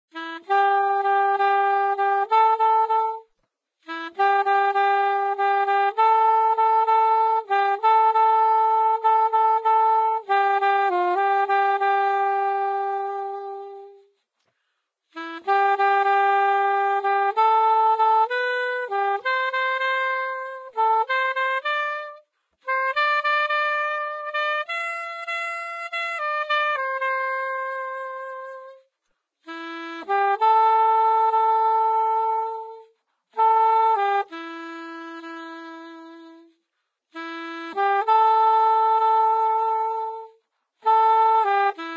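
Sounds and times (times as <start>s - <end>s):
saxophone: 0.1s - 41.9s.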